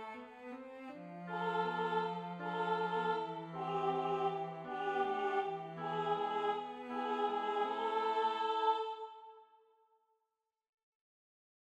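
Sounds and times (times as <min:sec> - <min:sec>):
soprano singing: 0:00.0 - 0:09.4.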